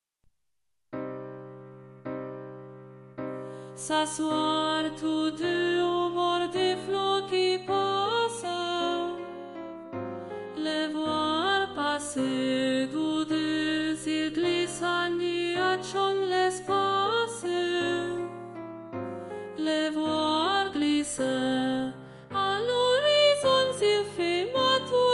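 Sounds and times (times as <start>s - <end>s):
soprano singing: 3.6s - 25.1s.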